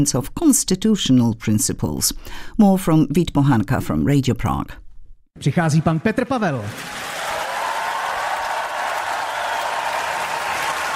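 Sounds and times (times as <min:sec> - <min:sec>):
speech: 0:00.0 - 0:04.8, 0:05.4 - 0:07.0
long applause greeting a speaker: 0:06.6 - 0:10.9.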